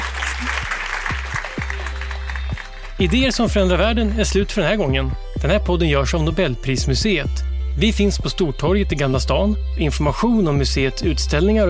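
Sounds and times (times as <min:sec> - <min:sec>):
audience applauding: 0:00.0 - 0:03.2
speech: 0:03.0 - 0:11.6.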